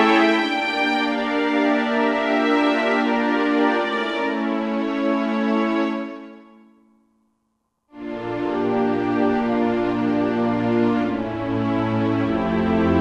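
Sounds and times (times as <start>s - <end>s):
orchestral film music on Roland SR-JV80-16 Orchestral II: 0.0s - 6.4s, 8.0s - 13.0s.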